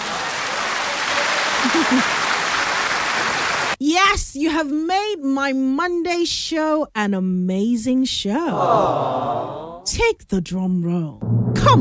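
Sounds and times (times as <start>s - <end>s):
round of applause: 0.0s - 3.8s
laughter: 1.1s - 2.4s, 8.5s - 9.9s
speech: 1.7s - 2.2s, 3.9s - 11.7s.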